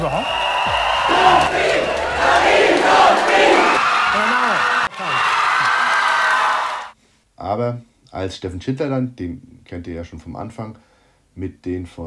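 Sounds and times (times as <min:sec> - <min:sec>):
speech: 0:00.0 - 0:01.7, 0:07.6 - 0:12.0
wine region fans cheering at the German Wine Queen election: 0:00.0 - 0:07.0.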